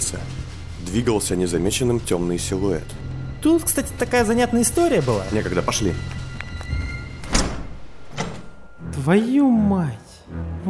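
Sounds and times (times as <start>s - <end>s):
speech: 0.9s - 6.2s, 9.0s - 10.6s
sharp click: 3.4s - 4.8s
door flung open into a loading-control building: 7.2s - 8.8s.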